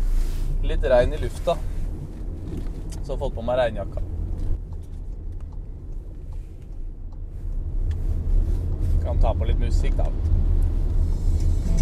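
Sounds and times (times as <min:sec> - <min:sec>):
car engine starting and driving off: 0:00.0 - 0:11.7
speech: 0:00.6 - 0:01.7, 0:03.1 - 0:04.1, 0:09.1 - 0:10.4.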